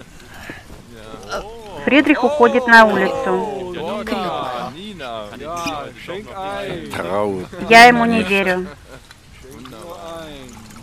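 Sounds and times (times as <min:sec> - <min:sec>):
laughter: 0:01.0 - 0:10.6
speech: 0:01.3 - 0:04.6, 0:05.2 - 0:08.8
moonshine pouring into a mug: 0:09.4 - 0:10.8.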